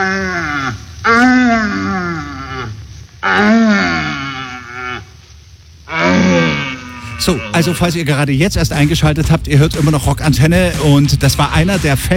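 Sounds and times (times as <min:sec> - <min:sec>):
red deer stags calling during the rut: 0:00.0 - 0:08.4
speech: 0:07.2 - 0:12.1.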